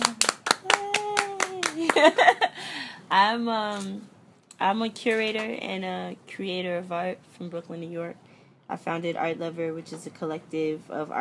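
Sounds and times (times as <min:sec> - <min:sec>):
audience clapping: 0:00.0 - 0:02.3
speech: 0:02.0 - 0:11.1.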